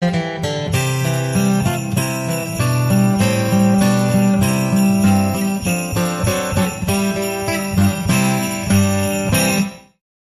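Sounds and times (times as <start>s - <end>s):
Christmas carol: 0.7s - 10.0s.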